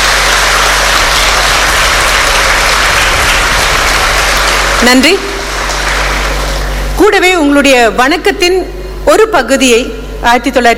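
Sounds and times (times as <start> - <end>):
audience applause: 0.0 - 6.9
speech: 4.8 - 5.3, 7.0 - 10.7.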